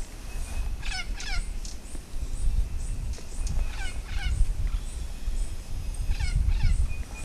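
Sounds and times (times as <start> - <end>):
bird calls: 0.0 - 7.2.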